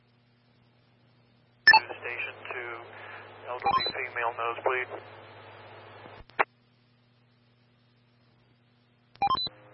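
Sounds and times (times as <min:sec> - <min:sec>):
radio static: 0:01.7 - 0:06.5
speech: 0:02.1 - 0:05.2
dispatch alert tones: 0:03.6 - 0:04.0, 0:09.2 - 0:09.5.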